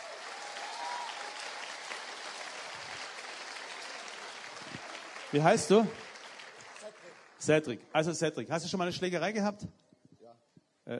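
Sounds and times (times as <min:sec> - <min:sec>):
audience applause: 0:00.0 - 0:07.7
speech: 0:05.3 - 0:06.0, 0:07.4 - 0:09.8.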